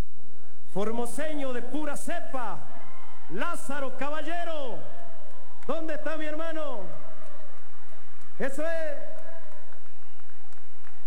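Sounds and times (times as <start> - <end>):
speech: 0.7 - 2.7, 3.3 - 5.0, 5.6 - 7.0, 8.4 - 9.1
audience applause: 5.0 - 11.0.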